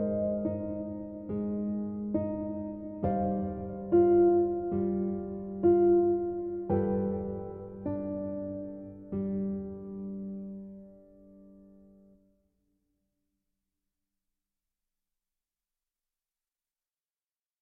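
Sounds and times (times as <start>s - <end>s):
solo piano: 0.0s - 12.4s.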